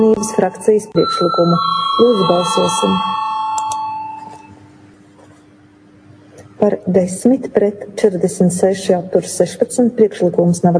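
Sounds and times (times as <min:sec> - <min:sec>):
speech: 0:00.0 - 0:03.2, 0:06.6 - 0:10.7
parliament voting bell ringing: 0:00.0 - 0:04.6.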